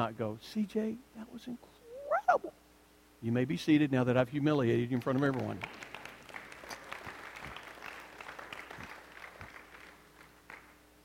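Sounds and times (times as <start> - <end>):
speech: 0.0 - 2.6, 3.2 - 5.8
audience clapping: 4.8 - 10.8.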